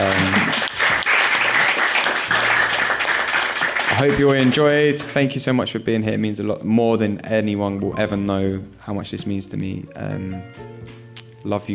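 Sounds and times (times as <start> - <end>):
live audience applause: 0.0 - 5.1
speech: 4.0 - 10.7, 11.4 - 11.7.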